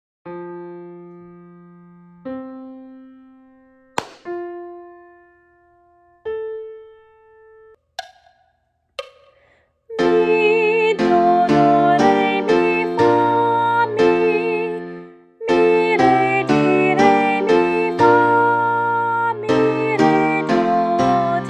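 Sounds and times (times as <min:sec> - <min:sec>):
soprano singing solfege: 0:09.9 - 0:14.8, 0:15.4 - 0:21.4.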